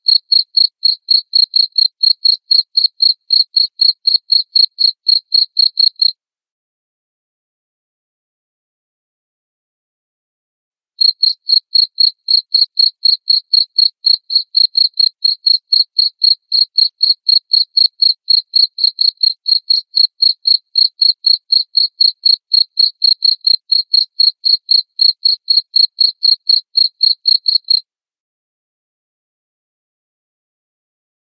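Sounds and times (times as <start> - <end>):
cricket chirping: 0.1 - 6.1, 11.0 - 27.8
speech: 0.4 - 2.0, 12.9 - 14.3.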